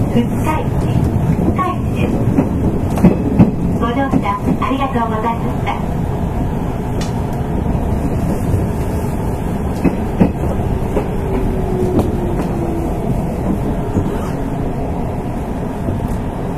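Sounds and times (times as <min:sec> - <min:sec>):
Nishitetsu 8000 series express train running on the Omuta Line: 0:00.0 - 0:16.5.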